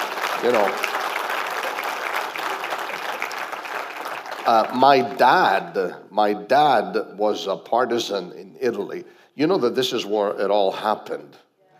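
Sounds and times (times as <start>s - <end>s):
church congregation clapping after a Remembrance Day tribute: 0.0s - 5.4s
speech: 0.4s - 0.9s, 4.4s - 11.5s.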